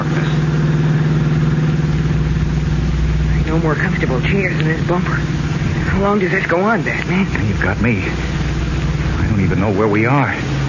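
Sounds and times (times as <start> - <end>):
car engine running: 0.0 - 10.6
speech: 3.6 - 8.3, 9.4 - 10.5.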